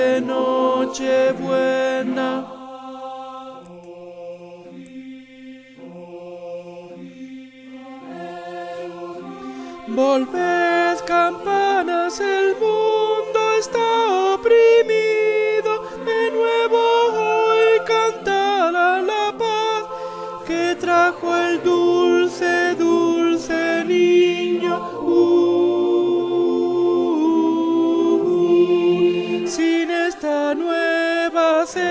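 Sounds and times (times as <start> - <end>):
alto voices singing: 0.0 - 31.8.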